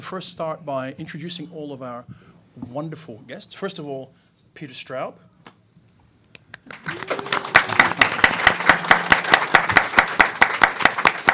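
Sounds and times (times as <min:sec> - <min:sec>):
speech: 0:00.0 - 0:05.3
small audience applause: 0:06.7 - 0:11.3.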